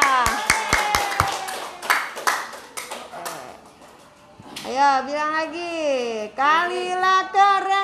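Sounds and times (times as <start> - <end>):
several hands clapping: 0.0 - 4.2
speech: 4.8 - 7.7.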